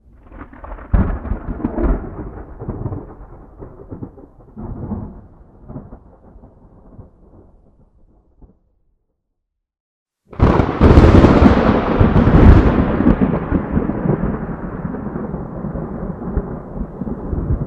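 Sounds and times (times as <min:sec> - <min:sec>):
thunder on an island: 0:00.1 - 0:08.7, 0:10.3 - 0:17.6.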